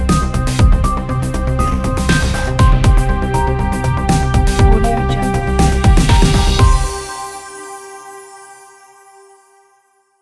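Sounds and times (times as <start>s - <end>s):
news opener intro logo jingle: 0.2s - 8.0s.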